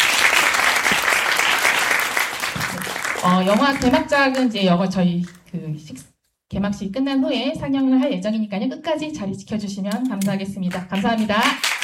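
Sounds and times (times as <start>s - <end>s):
audience applause: 0.0s - 3.9s, 11.6s - 11.8s
speech: 3.2s - 11.7s.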